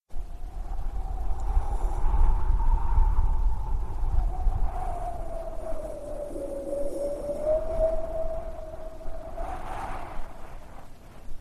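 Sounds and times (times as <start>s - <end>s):
wind: 0.0s - 11.3s.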